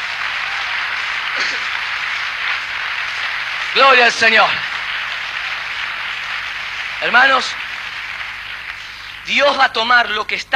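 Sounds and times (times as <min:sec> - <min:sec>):
audience applause: 0:00.0 - 0:10.2
speech: 0:01.4 - 0:01.9, 0:03.7 - 0:04.7, 0:07.0 - 0:07.6, 0:09.3 - 0:10.5.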